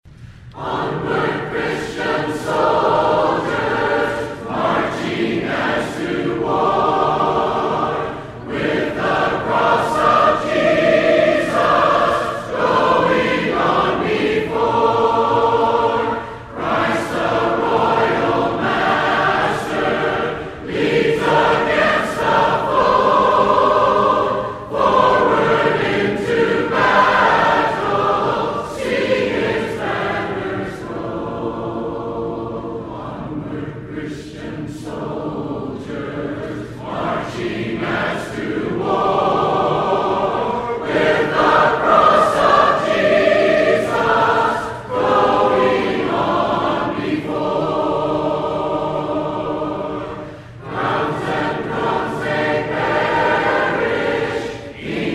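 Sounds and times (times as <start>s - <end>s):
a cappella hymn: 0.0s - 55.1s.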